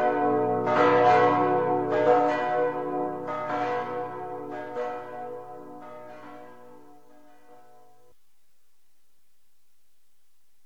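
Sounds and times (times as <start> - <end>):
church bells of the Zuiderkerk in Amsterdam: 0.0 - 8.1.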